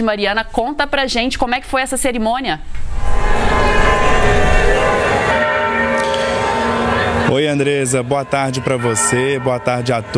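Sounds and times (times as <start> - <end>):
speech: 0.0 - 5.0, 7.3 - 10.1
church bells ringing: 3.0 - 10.1.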